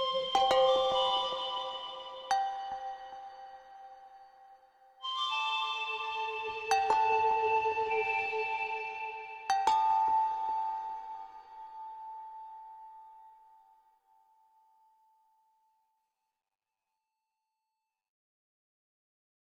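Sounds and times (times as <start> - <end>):
flute melody: 0.0 - 3.5, 5.0 - 10.1.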